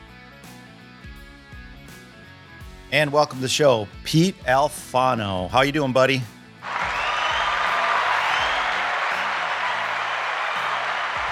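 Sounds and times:
speech: 2.9s - 6.4s
crowd cheering and applause: 6.6s - 11.3s.

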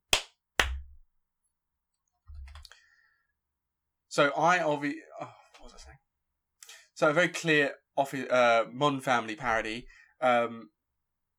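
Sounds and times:
hand claps: 0.1s - 1.0s
speech: 4.2s - 6.1s, 7.0s - 10.8s.

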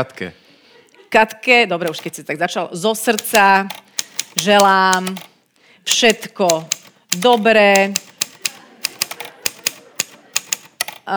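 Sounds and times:
speech: 0.0s - 0.4s, 1.1s - 3.8s, 4.4s - 8.1s
typewriter keys clattering: 1.9s - 2.2s, 3.0s - 5.3s, 5.9s - 11.1s.

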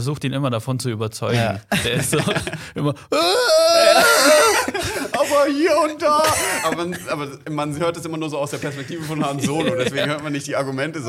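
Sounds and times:
speech: 0.0s - 11.0s
laughter: 1.4s - 7.8s, 8.5s - 10.7s
person imitating an alien creature's wailing scream: 3.1s - 5.3s.

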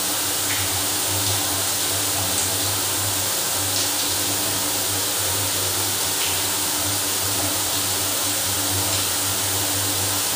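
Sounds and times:
hot shower running in a luxury hotel in San Antonio: 0.0s - 10.3s.

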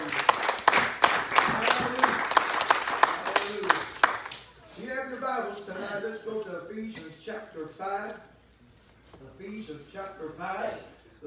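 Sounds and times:
audience hand clapping: 0.0s - 4.6s
speech: 6.7s - 8.4s, 9.2s - 11.2s.

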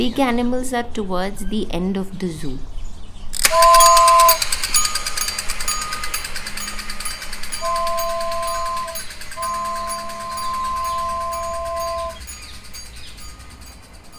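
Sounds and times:
speech: 0.0s - 2.7s, 3.5s - 4.5s
toy train running: 3.4s - 14.1s.

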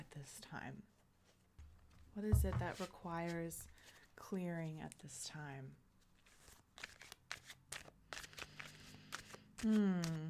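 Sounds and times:
speech: 0.2s - 1.0s, 2.2s - 5.8s, 9.6s - 10.2s
tarot cards being shuffled: 1.8s - 4.1s, 6.0s - 10.2s.

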